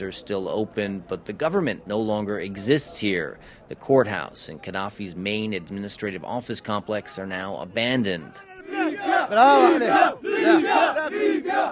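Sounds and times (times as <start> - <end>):
speech: 0.0 - 11.7
crowd of young men cheering a returned revolutionary in Libya main square: 6.8 - 11.7.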